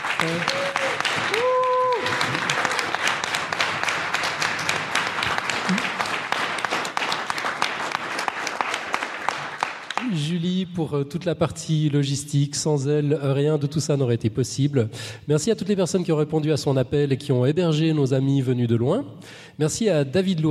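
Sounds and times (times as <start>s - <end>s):
audience applause at a science event: 0.0s - 10.2s
speech: 0.2s - 0.6s, 10.8s - 20.4s
whistles and cheers from a crowd: 0.2s - 2.9s.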